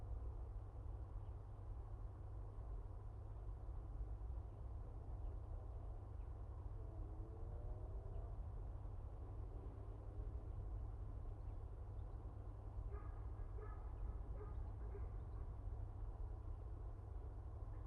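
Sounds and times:
city background noise: 0.0 - 17.8
empty train yard ambience: 12.7 - 17.8.

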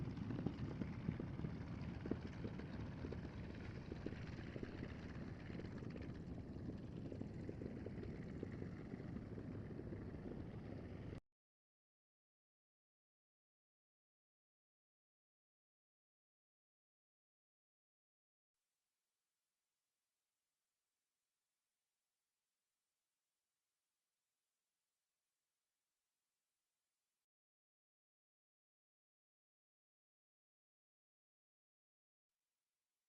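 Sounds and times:
Spitfire Mk XIV landing pass-by on a runway: 0.0 - 11.2.

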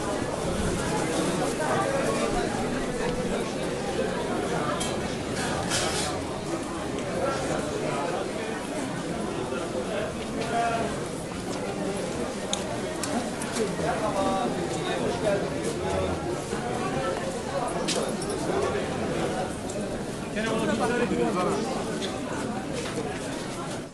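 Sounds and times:
crowd voices in a spice market interior in Istanbul: 0.0 - 23.9.

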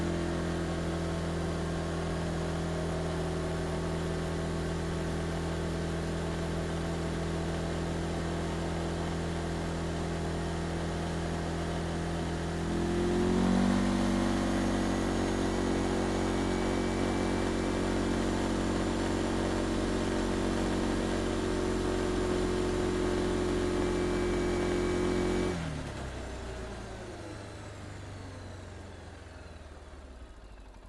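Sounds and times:
Textron Alterra Mudpro 700 engine at steady rpm starting and driving: 0.0 - 30.8.

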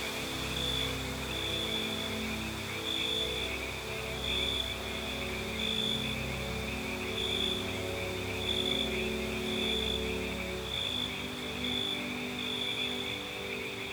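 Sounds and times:
grassland night ambience: 0.0 - 13.9.

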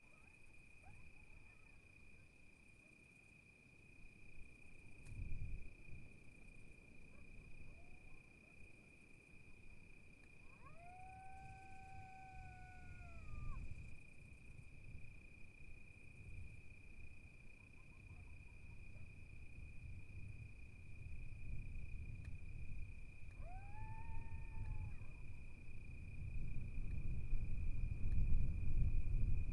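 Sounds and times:
constant high insect tone: 0.0 - 29.5
gusting wind: 4.8 - 6.3, 10.4 - 29.5
coyote howling: 7.7 - 8.3, 10.4 - 13.9, 23.3 - 25.3.

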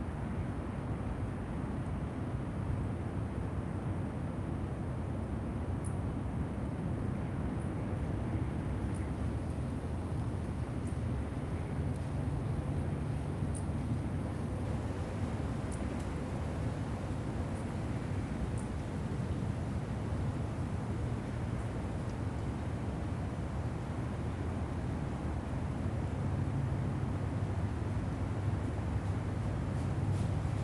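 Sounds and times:
distant city traffic: 0.0 - 30.6
outdoor city park ambience at night: 8.3 - 30.6.

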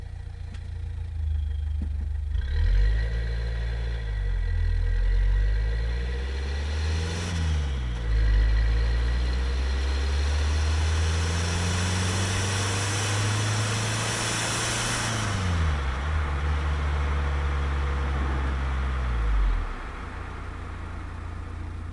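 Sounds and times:
car driving and stopping: 0.0 - 21.9.

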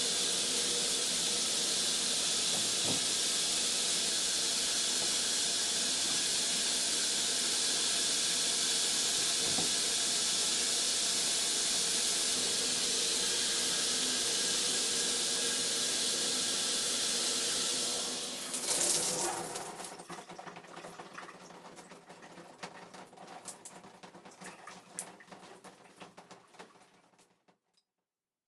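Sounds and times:
shower running: 0.0 - 27.4.

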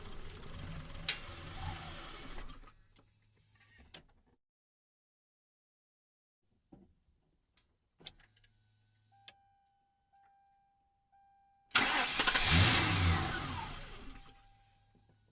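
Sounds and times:
Ford Crown Victoria engine idling and stalling: 0.0 - 2.7, 11.7 - 15.1.

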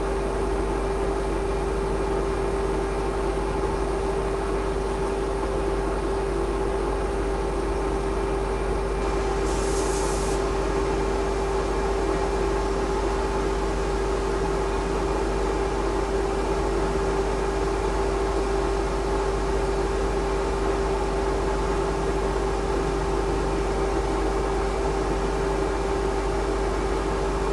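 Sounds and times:
industrial ironworks shop oxygen compressor running: 0.0 - 27.5.

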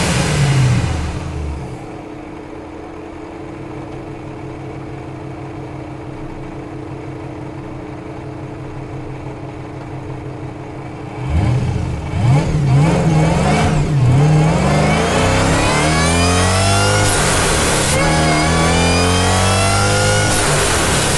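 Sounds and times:
2011 Dodge SRT8 driving fast, recorded onboard: 0.0 - 1.9, 11.0 - 21.1
2011 Dodge SRT8 engine starting, recorded onboard: 0.0 - 21.1.

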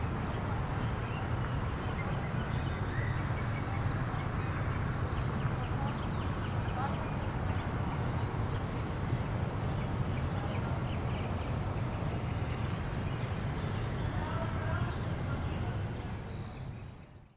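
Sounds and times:
birds in a residential park: 0.0 - 17.3
wind in a residential park: 0.0 - 17.3.

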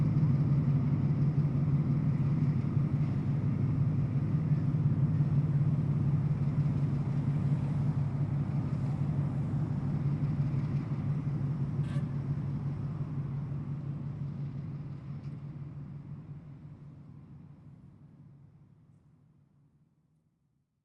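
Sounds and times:
freight train in Richmond: 0.0 - 19.8.

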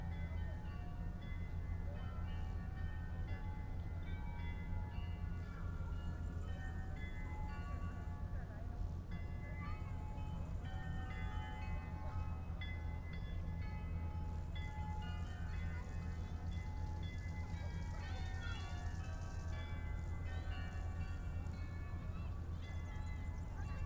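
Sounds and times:
distant glockenspiel in town vineyard: 0.0 - 23.8
murmur of voices in town vineyard: 4.9 - 23.8.

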